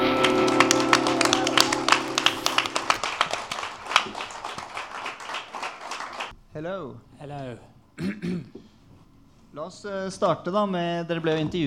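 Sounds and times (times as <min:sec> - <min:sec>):
audience applause: 0:00.0 - 0:06.3
speech: 0:06.6 - 0:08.6, 0:09.5 - 0:11.6.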